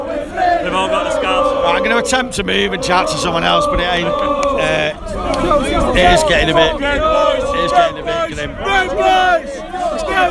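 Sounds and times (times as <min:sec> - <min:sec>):
large football stadium crowd chatter: 0:00.0 - 0:10.2
speech: 0:01.8 - 0:09.5.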